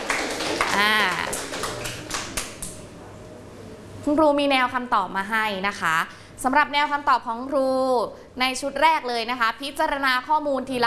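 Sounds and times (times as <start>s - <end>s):
classroom clapping: 0.0s - 2.9s
speech: 0.8s - 1.4s, 4.1s - 10.8s.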